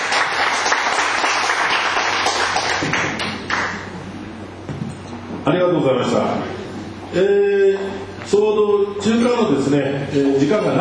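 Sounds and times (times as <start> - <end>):
audience applause: 0.0 - 3.9
speech: 5.5 - 10.8.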